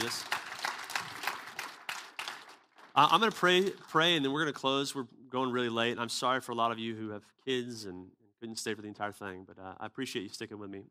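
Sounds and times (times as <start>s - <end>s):
audience applause: 0.0s - 3.8s
speech: 3.0s - 10.8s.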